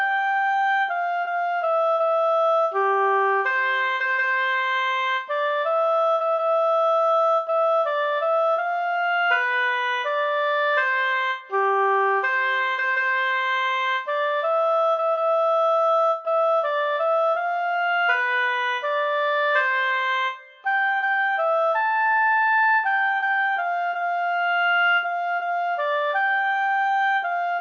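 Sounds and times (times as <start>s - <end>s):
solo oboe: 0.0s - 27.5s.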